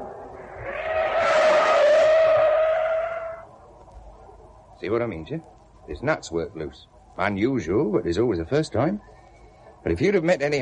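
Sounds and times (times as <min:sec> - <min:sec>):
car tires squealing in a long skid: 0:00.0 - 0:03.5
speech: 0:04.8 - 0:09.2, 0:09.8 - 0:10.6.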